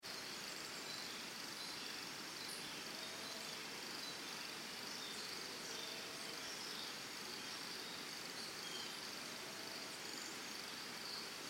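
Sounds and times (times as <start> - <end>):
crickets trilling in forest and jungle in Costa Rica: 0.1 - 11.4.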